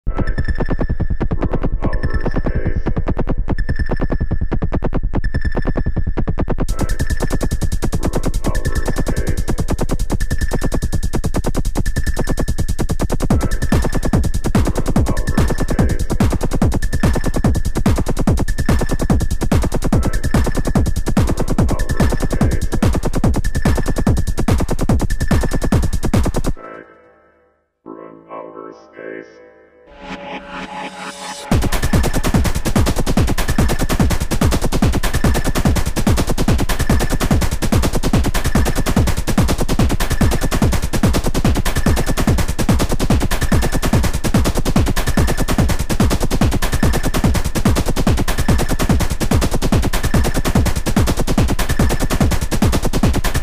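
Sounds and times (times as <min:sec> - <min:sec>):
Schranz murmur: 0:00.1 - 0:27.0, 0:28.7 - 0:53.4.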